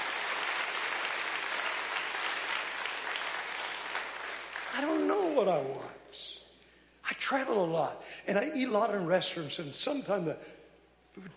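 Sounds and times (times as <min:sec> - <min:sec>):
audience clapping: 0:00.0 - 0:05.6
speech: 0:04.8 - 0:06.3, 0:07.3 - 0:10.6, 0:11.2 - 0:11.3.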